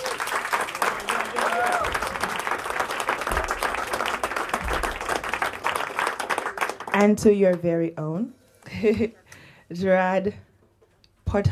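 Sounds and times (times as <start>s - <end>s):
audience applause welcoming a pianist at a concert in Paris: 0.0s - 7.1s
speech: 7.0s - 10.4s, 11.3s - 11.5s.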